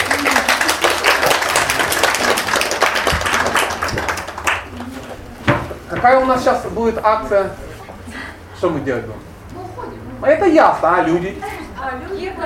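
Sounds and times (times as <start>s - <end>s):
prolonged crowd applause: 0.0s - 5.2s
speech: 6.0s - 7.6s, 8.6s - 9.3s, 10.2s - 12.4s.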